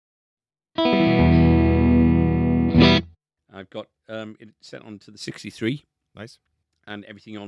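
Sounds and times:
electric guitar chord with effects pedal switched off: 0.8s - 3.1s
speech: 3.6s - 7.4s.

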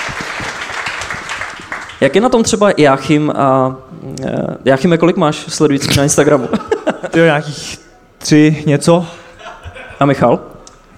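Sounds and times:
applause: 0.0s - 2.0s
speech: 2.0s - 9.2s, 10.0s - 10.5s
laughter: 6.2s - 7.5s, 9.1s - 10.3s.

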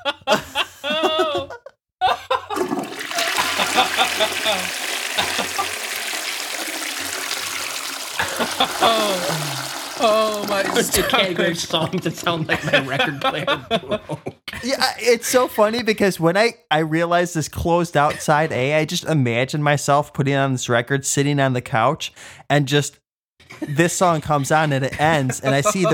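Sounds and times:
people laughing: 0.0s - 6.0s, 8.0s - 14.4s, 23.5s - 25.9s
toilet flushing: 2.5s - 13.5s
speech: 8.6s - 25.9s.

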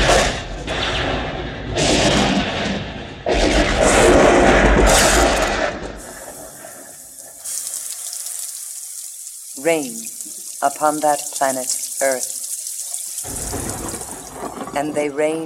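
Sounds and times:
thunder roaring: 0.0s - 7.0s, 13.2s - 14.8s
rain pouring down on hot ground: 6.0s - 14.8s
speech: 9.6s - 12.3s, 14.8s - 15.4s.

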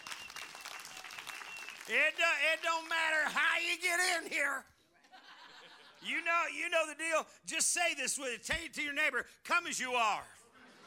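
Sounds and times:
audience applause: 0.0s - 2.9s
speech: 1.9s - 4.7s, 6.0s - 10.4s
laughter: 4.2s - 6.2s, 10.4s - 10.8s.

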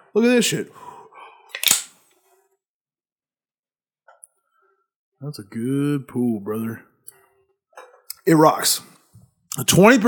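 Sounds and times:
speech: 0.1s - 1.0s, 5.2s - 6.9s, 8.2s - 9.0s, 9.6s - 10.0s
beer can cracking open: 1.5s - 2.0s.

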